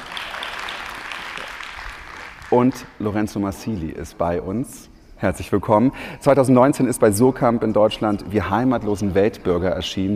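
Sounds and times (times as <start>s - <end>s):
audience applause: 0.0s - 2.9s
speech: 2.5s - 10.1s.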